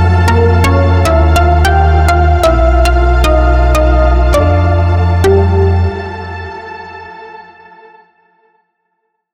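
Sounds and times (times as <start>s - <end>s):
ambient sound: 0.0s - 7.4s.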